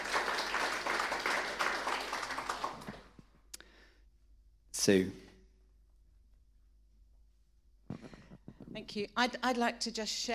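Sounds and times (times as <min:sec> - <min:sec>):
crowd clapping: 0:00.0 - 0:03.4
speech: 0:04.8 - 0:05.2, 0:09.0 - 0:10.3.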